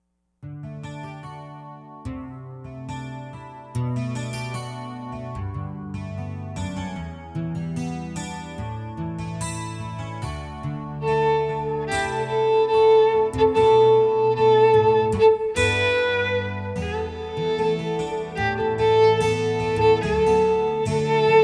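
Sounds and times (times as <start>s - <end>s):
viola: 8.0s - 21.4s.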